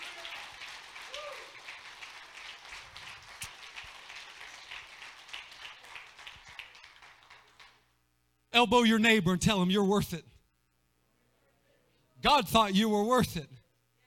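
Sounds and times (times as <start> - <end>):
audience clapping hands: 0.0 - 7.9
speech: 8.6 - 10.3, 12.2 - 13.6.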